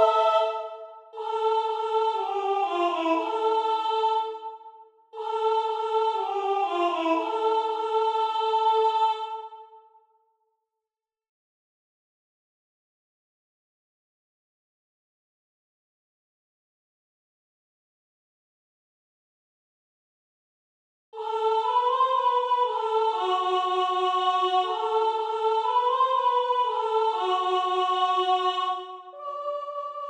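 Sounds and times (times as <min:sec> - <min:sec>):
soprano and alto voices: 0:00.0 - 0:09.8, 0:21.2 - 0:30.0.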